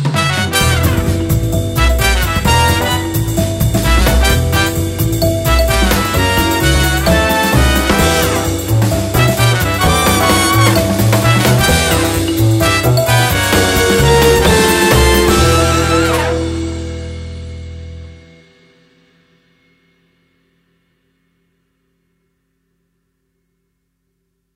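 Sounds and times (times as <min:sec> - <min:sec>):
opening theme music: 0:00.2 - 0:18.9.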